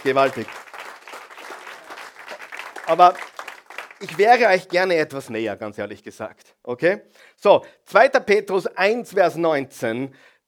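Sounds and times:
speech: 0.0 - 0.7, 2.9 - 3.3, 4.0 - 10.3
audience applause: 0.0 - 4.8.

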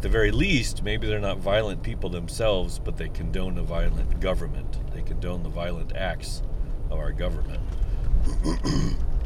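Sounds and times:
speech: 0.0 - 9.1
person coughing: 8.3 - 9.0.

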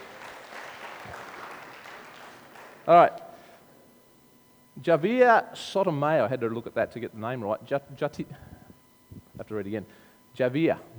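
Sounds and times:
small audience clapping: 0.0 - 3.0
speech: 2.9 - 3.2, 4.8 - 8.5, 9.5 - 10.9.

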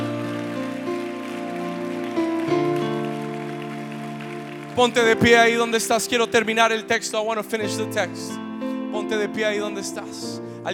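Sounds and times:
large crowd clapping: 0.0 - 7.1
speech: 4.8 - 8.4, 9.1 - 10.7.

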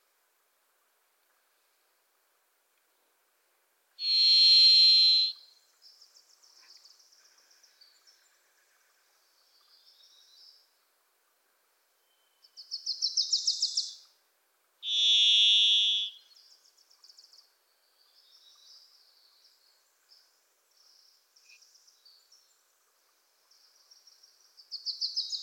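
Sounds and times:
varied thrush buzzy whistle: 4.0 - 5.4, 14.9 - 16.2.

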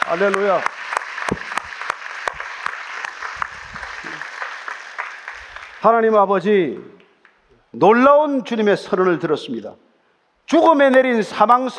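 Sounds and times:
audience applauding: 0.0 - 6.1
speech: 0.1 - 0.8, 5.8 - 7.0, 7.7 - 9.9, 10.5 - 11.7.

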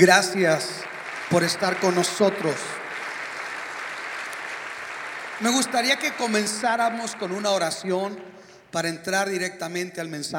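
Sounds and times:
speech: 0.0 - 2.8, 5.4 - 10.3
audience applause: 0.0 - 8.1.

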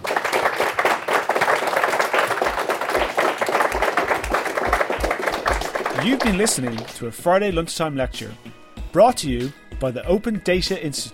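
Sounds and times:
audience round of applause: 0.0 - 7.0
speech: 6.0 - 11.1.

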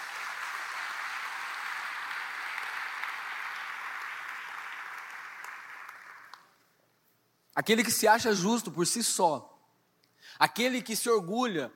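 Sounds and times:
audience applause: 0.0 - 6.5
speech: 7.6 - 9.5, 10.4 - 11.7.

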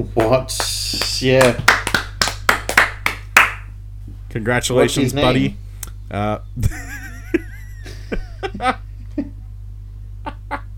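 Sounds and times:
speech: 0.0 - 1.8, 4.4 - 7.5, 8.1 - 9.3
audience applause: 0.6 - 3.6
laughter: 6.6 - 9.4, 10.2 - 10.7.

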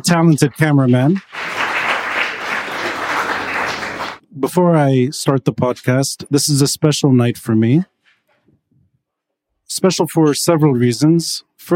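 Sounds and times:
speech: 0.0 - 1.5, 4.4 - 8.0, 9.7 - 11.7
crowd applauding: 0.4 - 4.2.

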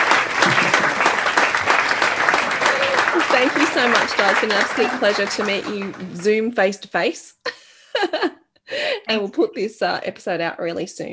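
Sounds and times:
laughter: 0.0 - 6.4, 7.5 - 9.4
applause sound effect: 0.0 - 6.7
speech: 3.4 - 11.1.

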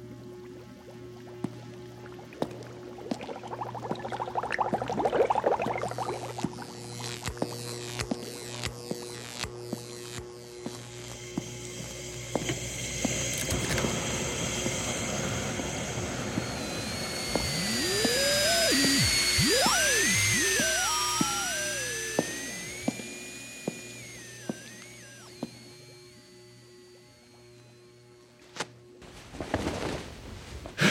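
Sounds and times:
low hum: 0.0 - 29.2
eerie gliding whistles: 13.5 - 27.4
clicks: 16.4 - 26.0.

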